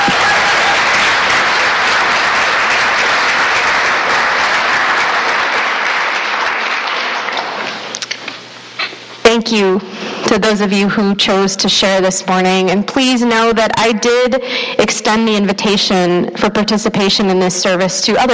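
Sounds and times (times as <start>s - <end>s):
large audience applause: 0.0s - 7.9s
speech: 9.4s - 18.3s.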